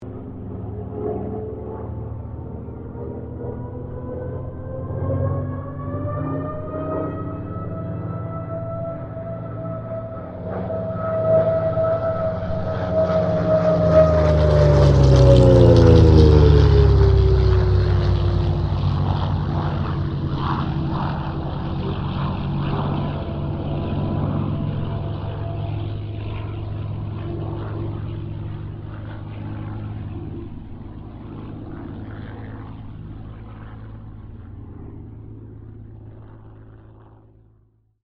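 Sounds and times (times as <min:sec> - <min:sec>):
Kittyhawk airplane passing: 0:00.0 - 0:37.8.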